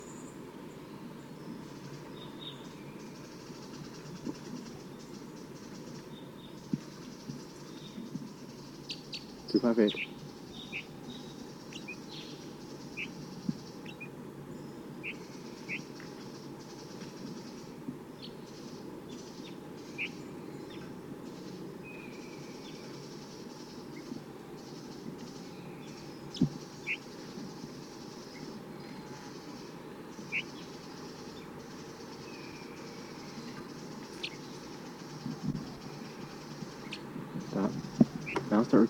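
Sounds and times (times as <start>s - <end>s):
wild bird calling: 0.0s - 38.8s.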